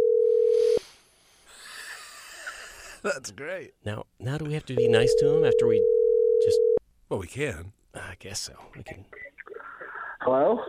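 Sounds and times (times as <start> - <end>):
telephone dial tone: 0.0 - 0.8, 5.0 - 6.8
speech: 3.0 - 9.2, 10.2 - 10.6.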